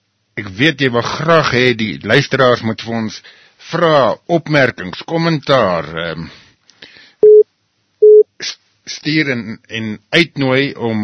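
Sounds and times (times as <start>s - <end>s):
speech: 0.4s - 6.4s, 8.4s - 11.0s
incoming phone call beeps: 7.2s - 7.4s, 8.0s - 8.2s.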